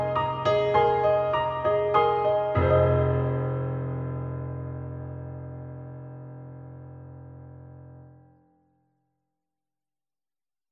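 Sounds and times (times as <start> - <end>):
orchestral concert piano: 0.0 - 8.1.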